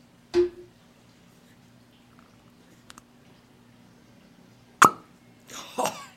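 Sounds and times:
cork popping out of whiskey bottle: 4.8s - 5.1s.

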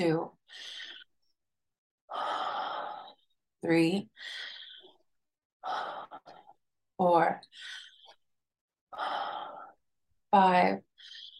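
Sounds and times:
speech: 0.0s - 0.7s, 3.6s - 4.5s, 7.0s - 7.8s, 8.9s - 9.6s, 10.3s - 10.9s
slow inhale during guided breathing exercise: 0.5s - 1.1s, 2.1s - 3.4s, 4.2s - 6.6s, 7.5s - 8.2s, 8.9s - 9.8s.

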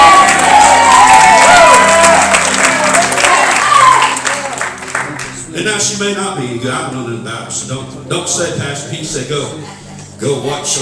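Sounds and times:
crowd shouts and whoops: 0.0s - 4.4s
crowd clapping: 0.0s - 5.5s
speech: 6.0s - 10.8s.

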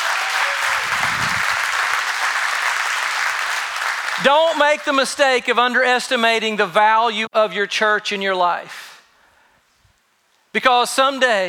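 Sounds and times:
audience clapping: 0.0s - 5.3s
speech: 4.2s - 8.9s, 10.6s - 11.4s.

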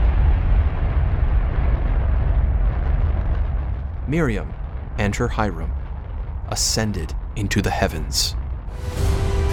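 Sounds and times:
rocket engines roaring: 0.2s - 9.4s
speech: 4.1s - 5.8s, 6.5s - 9.0s.

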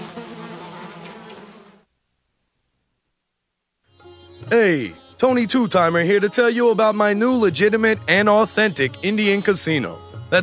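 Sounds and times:
flies buzzing: 0.0s - 1.9s
speech: 4.5s - 10.4s.

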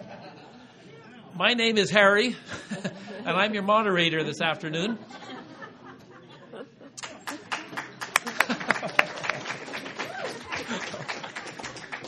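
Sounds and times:
laughter: 0.0s - 0.9s, 2.3s - 3.9s, 4.8s - 12.0s
speech: 1.4s - 5.4s
audience applause: 7.0s - 12.0s.

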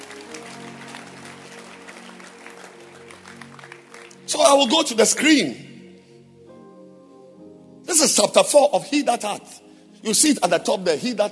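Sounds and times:
audience clapping at a talk: 0.0s - 4.7s
speech: 4.3s - 5.7s, 8.2s - 11.2s.

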